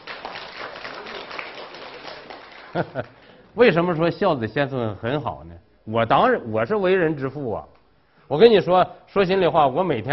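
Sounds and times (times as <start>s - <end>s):
audience applause: 0.0s - 3.5s
speech: 2.8s - 7.7s, 8.3s - 10.1s.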